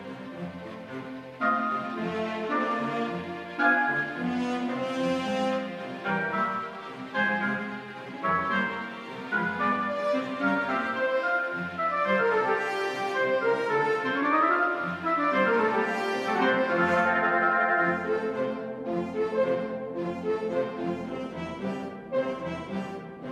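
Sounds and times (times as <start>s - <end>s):
classical piano concerto movement: 0.5s - 23.2s.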